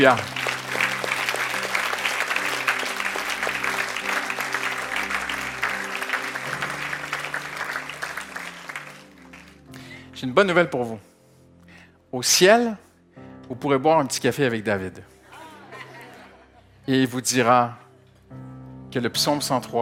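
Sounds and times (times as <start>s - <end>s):
speech: 0.0s - 0.4s, 10.2s - 11.1s, 12.1s - 12.8s, 13.5s - 15.1s, 16.8s - 19.7s
audience applauding and cheering: 0.0s - 10.0s
laughter: 15.3s - 16.8s.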